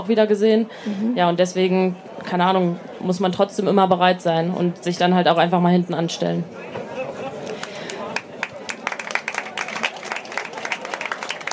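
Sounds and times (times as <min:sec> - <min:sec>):
speech: 0:00.0 - 0:06.8
faint murmur of voices: 0:00.0 - 0:11.5
audience applause: 0:07.4 - 0:11.5.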